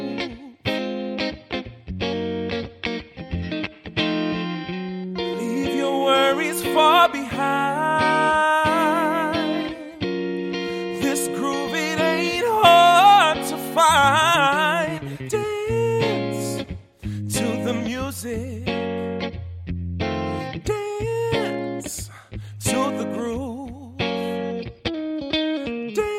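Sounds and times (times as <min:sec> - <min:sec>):
man singing: 0:00.0 - 0:00.8, 0:05.3 - 0:18.9, 0:20.6 - 0:24.3, 0:25.6 - 0:26.1
electric guitar: 0:00.0 - 0:26.1.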